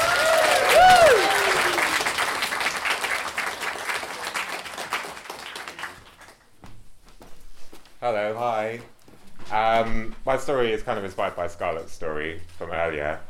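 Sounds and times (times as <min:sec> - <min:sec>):
whooping and cheering: 0:00.0 - 0:02.3
audience applause: 0:00.0 - 0:06.4
speech: 0:08.1 - 0:13.2.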